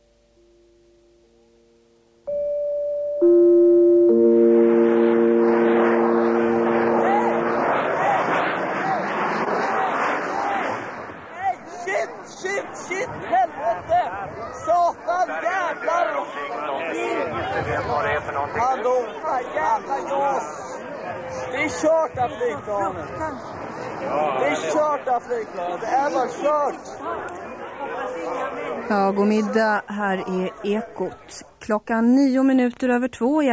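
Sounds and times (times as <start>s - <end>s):
sustained electronic tones: 2.3s - 7.9s
large outdoor crowd murmuring and chattering at an air show: 3.2s - 32.5s
speech: 29.8s - 33.5s.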